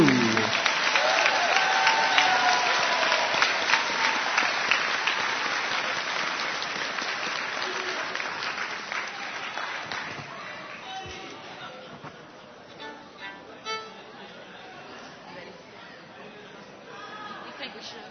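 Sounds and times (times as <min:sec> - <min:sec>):
faint crowd murmur: 0:00.0 - 0:00.6, 0:10.0 - 0:18.0
audience applause for entertainers at an evening meeting: 0:00.0 - 0:10.9.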